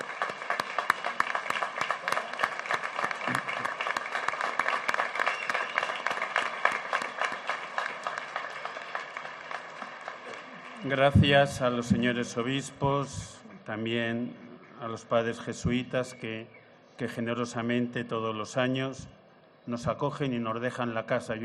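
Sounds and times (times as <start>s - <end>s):
audience applause: 0.0s - 11.8s
speech: 10.8s - 21.4s.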